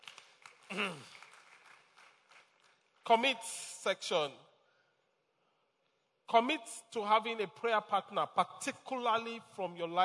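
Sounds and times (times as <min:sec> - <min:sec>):
audience clapping: 0:00.0 - 0:03.2
speech: 0:00.7 - 0:01.2, 0:03.1 - 0:04.5, 0:06.3 - 0:10.0.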